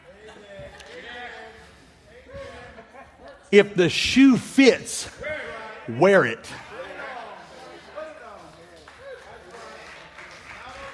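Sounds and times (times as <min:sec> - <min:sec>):
speech: 0:03.5 - 0:05.2, 0:05.9 - 0:06.6
audience clapping: 0:08.3 - 0:10.9.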